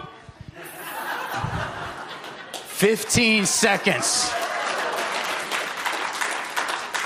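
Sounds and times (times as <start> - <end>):
laughter: 0.5 - 5.5
audience clapping: 1.9 - 7.0
speech: 2.8 - 4.4.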